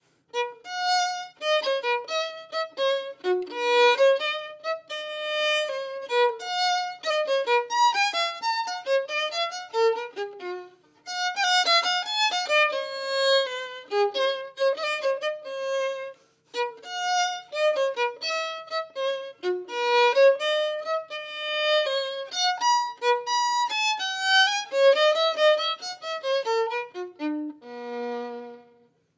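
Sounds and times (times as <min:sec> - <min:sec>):
violin: 0:00.0 - 0:29.1.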